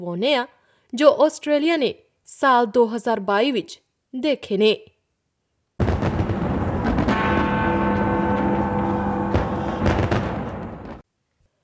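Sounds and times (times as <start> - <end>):
speech: 0.0 - 4.9
New Year's fireworks over Sydney Harbour: 5.8 - 11.0.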